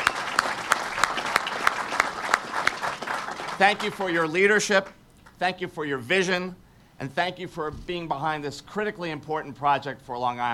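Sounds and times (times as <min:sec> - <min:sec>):
audience applause for Governor Cuomo: 0:00.0 - 0:04.8
speech: 0:03.6 - 0:10.5.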